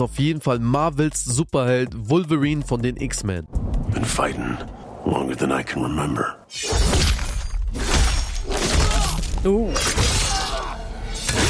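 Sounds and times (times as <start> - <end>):
speech: 0.0 - 7.9, 9.4 - 10.2
game trailer metallic claw slashes: 6.5 - 11.4.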